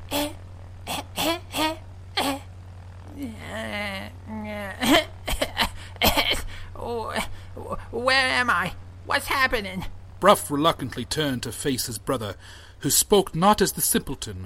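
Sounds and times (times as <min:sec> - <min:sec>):
coughing: 0:00.0 - 0:02.5, 0:03.1 - 0:07.8
soft whimpering: 0:00.0 - 0:02.5, 0:03.1 - 0:05.1
speech: 0:08.4 - 0:14.4.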